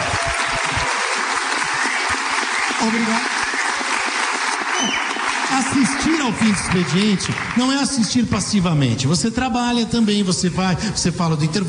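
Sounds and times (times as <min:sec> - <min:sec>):
audience applause at a live studio event: 0:00.0 - 0:08.2
speech: 0:02.8 - 0:03.3, 0:05.6 - 0:11.6.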